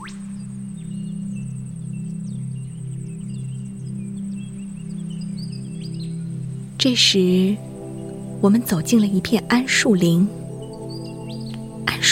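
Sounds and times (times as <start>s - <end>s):
thin high-pitched whine: 0.0s - 6.7s
bird chirps: 0.0s - 12.0s
speech: 6.8s - 7.7s, 8.4s - 10.4s.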